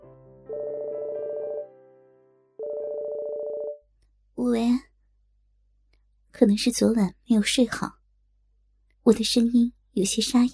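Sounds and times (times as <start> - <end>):
mobile phone ringtone: 0.5 - 1.7, 2.6 - 3.8
speech: 6.4 - 8.0, 9.1 - 10.5.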